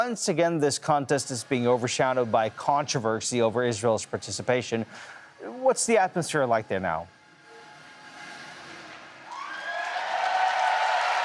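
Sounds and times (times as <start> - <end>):
speech: 0.0 - 7.2
crowd applause and cheering at a Eurovision semi-final in Vienna: 9.2 - 11.2.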